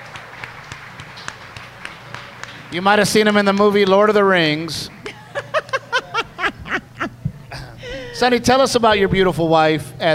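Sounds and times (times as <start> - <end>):
audience applause: 0.0 - 4.0
speech: 2.7 - 5.0, 8.2 - 10.1
laughter: 5.0 - 8.3.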